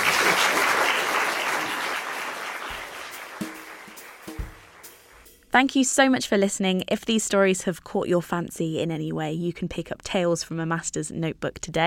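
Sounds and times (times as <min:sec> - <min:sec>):
audience applause: 0:00.0 - 0:04.9
speech: 0:05.5 - 0:11.8.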